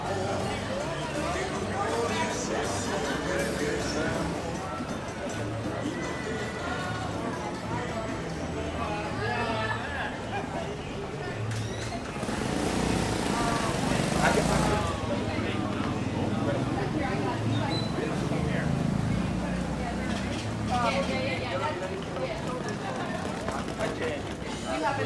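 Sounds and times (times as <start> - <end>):
voices talking on 5th Avenue in Playa del Carmen: 0.0 - 25.0
low rumble of vehicles: 11.3 - 25.0.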